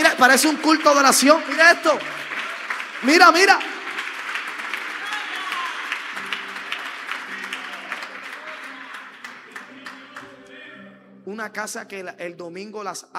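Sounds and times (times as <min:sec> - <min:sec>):
audience applause: 0:00.0 - 0:10.4
speech: 0:00.2 - 0:02.3, 0:03.0 - 0:03.7, 0:11.3 - 0:13.1.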